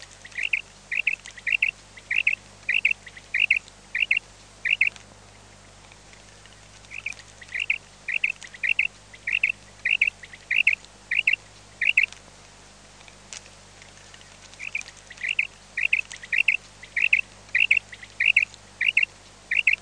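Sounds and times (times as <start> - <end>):
common quail calling: 0.2 - 5.0, 6.9 - 12.1, 14.6 - 19.7.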